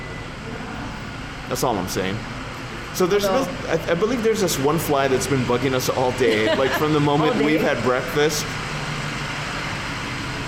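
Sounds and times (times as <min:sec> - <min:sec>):
big trucks passing on road: 0:00.0 - 0:10.4
speech: 0:01.5 - 0:02.4, 0:03.0 - 0:08.6
laughter: 0:05.8 - 0:08.3.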